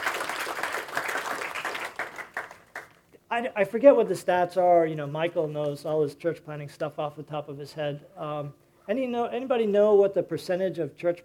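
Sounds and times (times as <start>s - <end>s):
crowd round of applause: 0.0s - 3.0s
speech: 3.4s - 11.2s.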